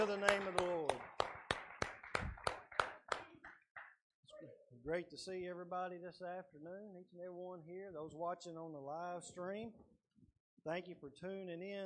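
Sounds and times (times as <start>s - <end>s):
speech: 0.0s - 0.7s, 4.9s - 9.9s, 10.6s - 11.8s
audience hand clapping: 0.0s - 4.0s.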